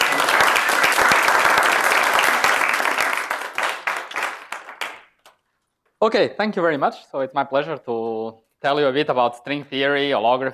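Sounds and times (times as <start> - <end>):
audience applause at a physics lecture on string theory: 0.0 - 5.3
speech: 6.0 - 10.5.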